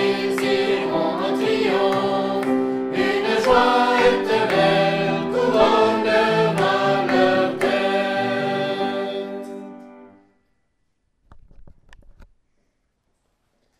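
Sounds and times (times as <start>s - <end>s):
chanting: 0.0s - 9.7s.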